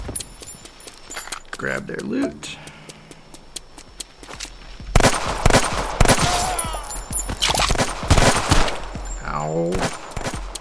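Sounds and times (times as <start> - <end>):
speech: 1.6 - 2.7
video game gunfire: 4.9 - 9.0.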